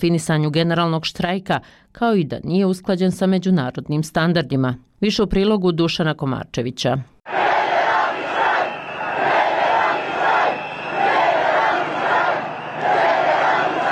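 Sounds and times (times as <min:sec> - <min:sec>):
speech: 0:00.0 - 0:07.4
thousands of people chanting a slogan: 0:07.3 - 0:13.9.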